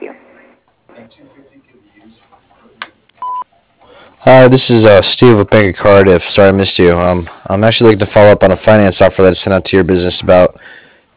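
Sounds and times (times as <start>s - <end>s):
answering machine beep: 3.2s - 3.5s
speech: 4.2s - 10.7s.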